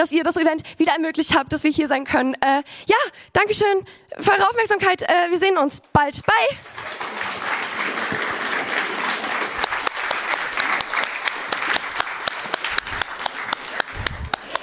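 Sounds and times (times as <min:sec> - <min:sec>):
speech: 0:00.0 - 0:07.1
audience applause: 0:06.6 - 0:14.6.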